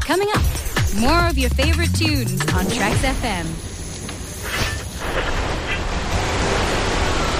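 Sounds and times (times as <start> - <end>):
speech: 0.1 - 3.7
heavy rain: 4.9 - 7.3.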